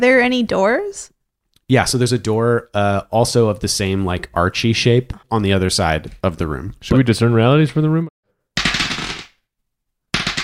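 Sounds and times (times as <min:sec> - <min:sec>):
speech: 0:00.0 - 0:01.1, 0:01.7 - 0:08.2
dice being rolled and rattled: 0:08.6 - 0:09.4, 0:10.2 - 0:10.4.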